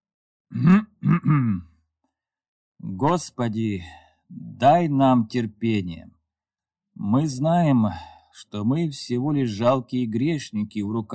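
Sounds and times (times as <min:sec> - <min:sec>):
speech: 0:00.5 - 0:00.9, 0:03.0 - 0:06.2, 0:07.0 - 0:11.1
gruff throat clearing: 0:00.5 - 0:01.7.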